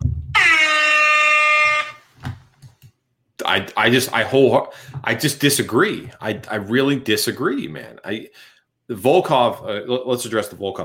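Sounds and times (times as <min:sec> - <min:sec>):
loud sustained air horn blast: 0:00.3 - 0:02.1
speech: 0:03.6 - 0:10.8.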